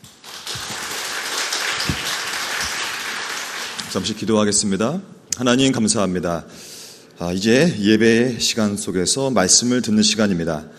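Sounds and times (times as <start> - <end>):
crowd applause welcoming a speaker: 0.0 - 4.0
speech: 3.9 - 10.7.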